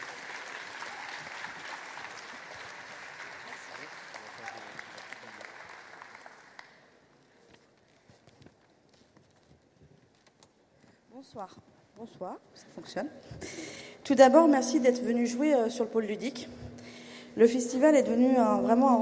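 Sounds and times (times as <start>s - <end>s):
audience clapping: 0.0s - 8.0s
speech: 11.2s - 16.6s, 17.4s - 18.9s.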